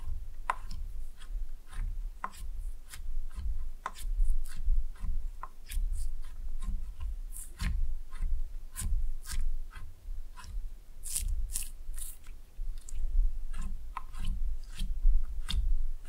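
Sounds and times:
slime being squeezed and played with: 0:00.0 - 0:16.0.

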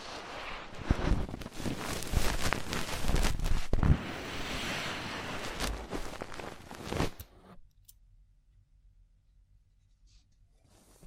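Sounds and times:
fast intense ear cleaning scratching and rubbing: 0:00.0 - 0:07.6.

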